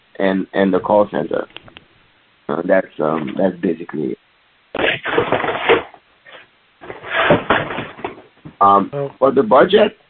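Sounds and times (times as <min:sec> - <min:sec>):
speech: 0:00.2 - 0:01.6, 0:02.5 - 0:04.2, 0:08.6 - 0:10.0
people shuffling things around: 0:04.8 - 0:08.6.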